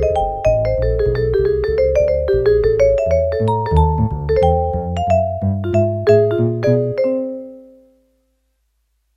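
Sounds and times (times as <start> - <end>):
acoustic bass on a synthesizer: 0.0 - 7.0
vibraphone on a synthesizer: 0.0 - 7.8.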